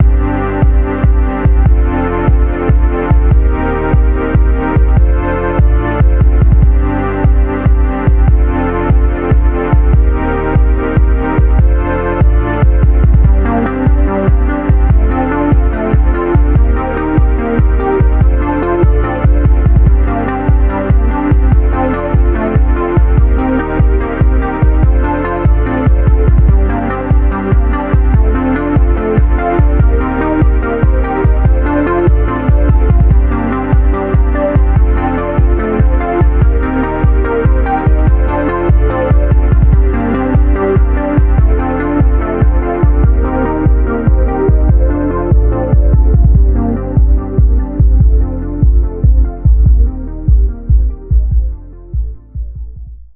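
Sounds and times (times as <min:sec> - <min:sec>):
music beat: 0:00.0 - 0:53.1.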